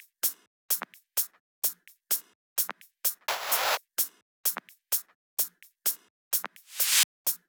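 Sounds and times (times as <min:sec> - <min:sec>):
drums: 0:03.3 - 0:03.8, 0:06.6 - 0:07.0.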